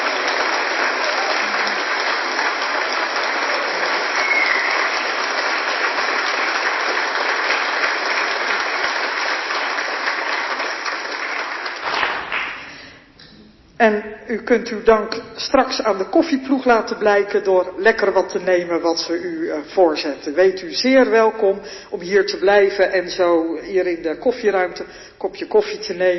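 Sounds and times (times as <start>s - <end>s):
audience applause: 0.0s - 12.9s
speech: 13.8s - 26.1s.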